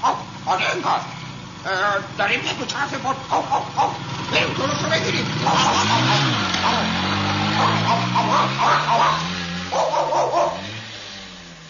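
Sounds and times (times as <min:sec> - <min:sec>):
dogs barking: 0:00.0 - 0:01.1, 0:03.2 - 0:04.1, 0:05.4 - 0:10.8
speech: 0:00.5 - 0:09.2.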